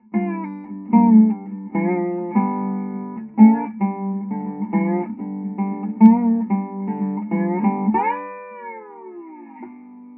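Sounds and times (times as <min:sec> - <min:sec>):
dobro filtered through mic response: 0:00.0 - 0:10.0.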